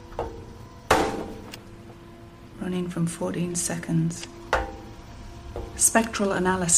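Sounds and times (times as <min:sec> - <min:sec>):
radiator struck with metallic clangs: 0:00.0 - 0:02.0, 0:04.0 - 0:06.7
speech: 0:02.7 - 0:04.4, 0:05.8 - 0:06.7.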